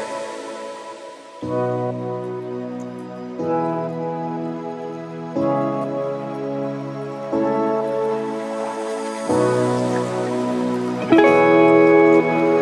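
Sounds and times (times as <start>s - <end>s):
chillout music: 0.0s - 12.5s.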